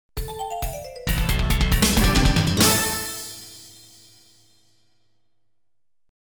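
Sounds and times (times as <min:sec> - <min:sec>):
arcade version logo jingle: 0:00.2 - 0:04.5.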